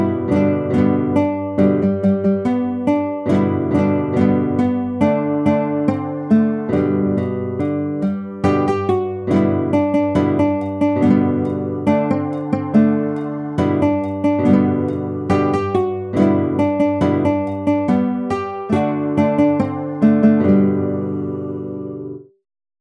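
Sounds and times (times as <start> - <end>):
guitar playing: 0.0 - 22.3.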